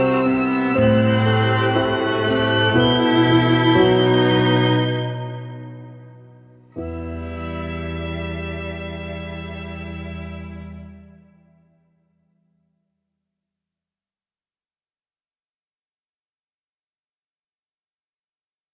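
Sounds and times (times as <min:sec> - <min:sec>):
dramatic intimate music: 0:00.0 - 0:11.4.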